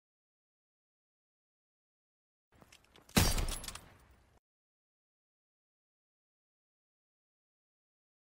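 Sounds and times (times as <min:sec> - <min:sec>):
Kar98k headshot: 0:03.2 - 0:03.8.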